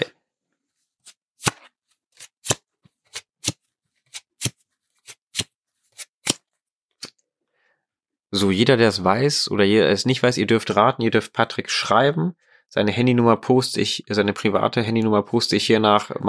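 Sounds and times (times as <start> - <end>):
playing cards being handled: 1.4 - 7.1
speech: 8.4 - 16.2.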